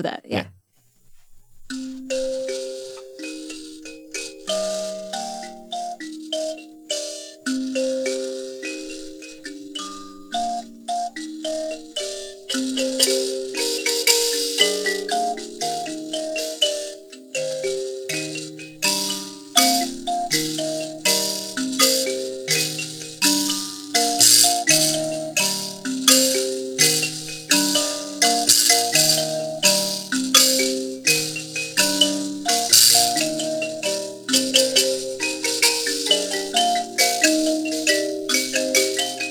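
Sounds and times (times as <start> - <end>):
speech: 0.0 - 0.6
Shona music with buzzing percussion: 1.7 - 39.2.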